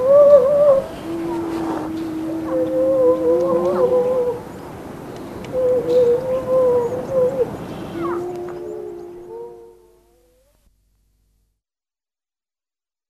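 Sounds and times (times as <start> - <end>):
grey seal moans, low and wavering: 0.0 - 4.5, 5.7 - 10.2.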